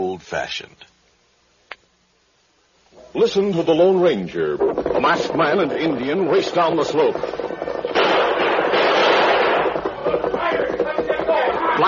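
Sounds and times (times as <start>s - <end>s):
speech: 0.2s - 0.9s, 3.1s - 7.4s
gunshots: 4.6s - 11.8s.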